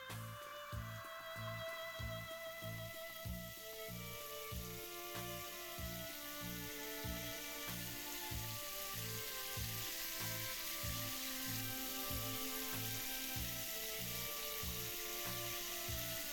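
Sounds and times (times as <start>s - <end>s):
shower water running over someone: 0.1s - 16.3s.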